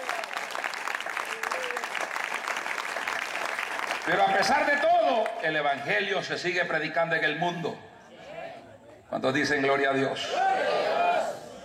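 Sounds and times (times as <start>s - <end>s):
church audience applauding: 0.0s - 5.4s
speech: 4.0s - 7.9s, 9.1s - 10.9s.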